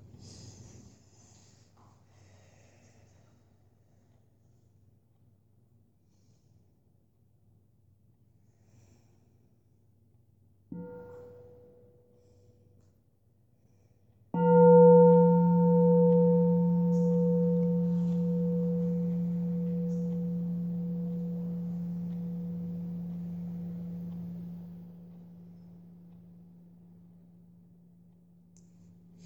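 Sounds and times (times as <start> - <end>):
deep resonant bell ringing: 10.7 - 12.0, 14.4 - 29.2.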